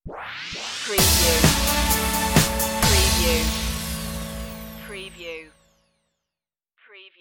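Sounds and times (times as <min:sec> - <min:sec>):
twilight music stinger: 0:00.1 - 0:05.9.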